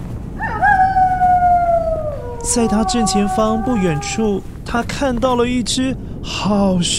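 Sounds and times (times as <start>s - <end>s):
low rumbling background: 0.0s - 6.9s
wolf howling: 0.4s - 4.5s
speech: 2.5s - 6.9s.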